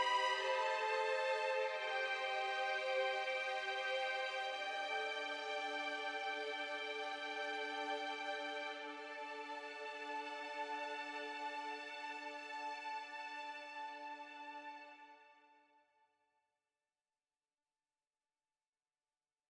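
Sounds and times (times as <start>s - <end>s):
cantabile violins: 0.0s - 15.5s.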